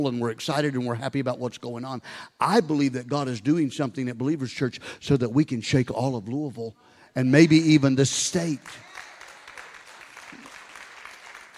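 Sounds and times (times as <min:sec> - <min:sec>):
speech: 0:00.0 - 0:08.9
soft scattered applause from a small crowd: 0:08.6 - 0:11.5.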